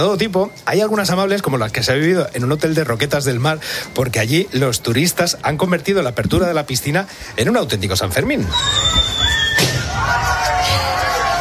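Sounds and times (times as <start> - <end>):
speech: 0.0 - 9.5
murmur: 1.4 - 11.4
person whistling: 8.4 - 9.9.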